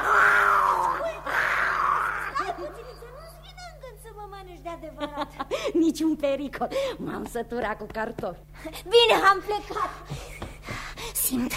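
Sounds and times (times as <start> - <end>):
lion roaring: 0.0 - 2.6
speech: 5.9 - 10.2, 11.3 - 11.5.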